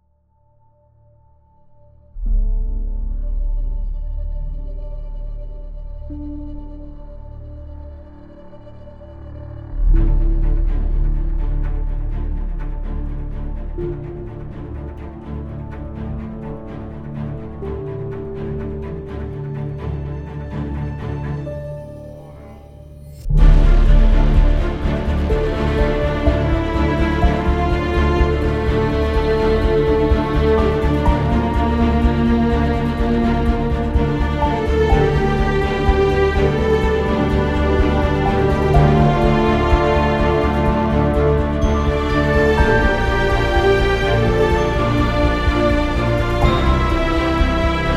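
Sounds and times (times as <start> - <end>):
epic melody: 2.1 - 47.9.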